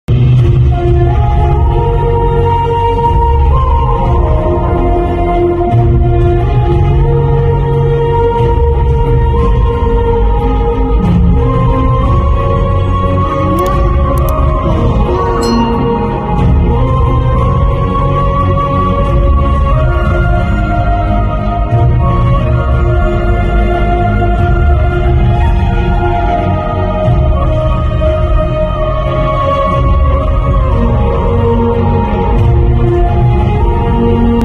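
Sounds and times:
sad background music ringtone: 0:00.4 - 0:34.4.

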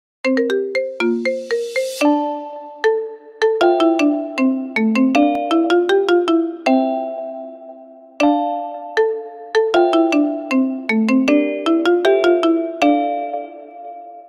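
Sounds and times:
anime music ringtone remix: 0:00.3 - 0:14.2.

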